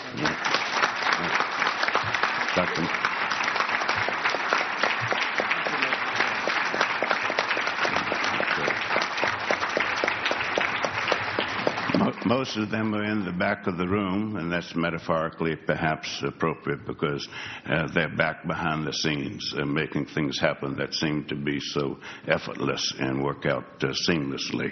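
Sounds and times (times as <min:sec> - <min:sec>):
audience applause: 0:00.0 - 0:12.6
speech: 0:02.6 - 0:03.1, 0:12.3 - 0:24.7.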